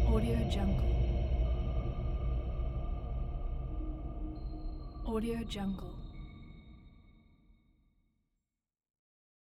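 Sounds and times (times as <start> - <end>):
horror atmosphere: 0.0 - 6.9.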